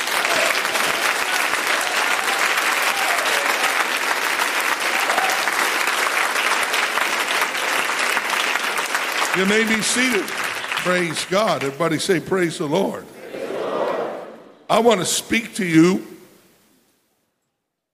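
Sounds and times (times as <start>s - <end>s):
audience clapping: 0.0s - 12.5s
speech: 9.4s - 13.2s, 14.7s - 16.1s.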